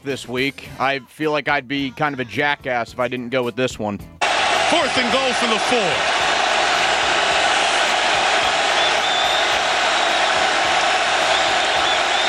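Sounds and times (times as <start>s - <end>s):
speech: 0.0s - 6.3s
huge stadium crowd cheering: 4.2s - 12.2s
whoops and shouts: 4.4s - 12.2s.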